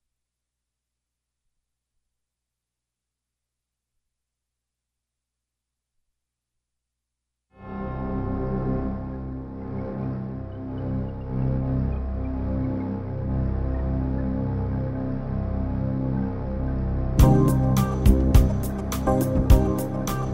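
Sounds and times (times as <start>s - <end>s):
mountain music keyboards: 7.6s - 20.3s.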